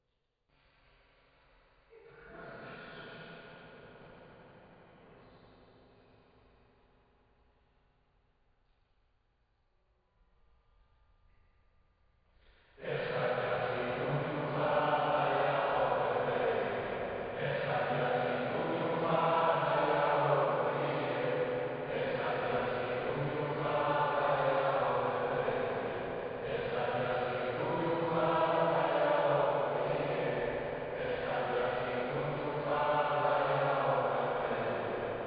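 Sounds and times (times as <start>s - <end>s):
choir singing: 12.8s - 35.2s.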